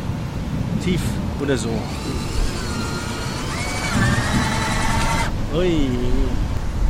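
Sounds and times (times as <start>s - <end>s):
speech: 0.8s - 2.3s, 5.5s - 6.4s
cordless power screwdriver spinning: 1.8s - 5.3s.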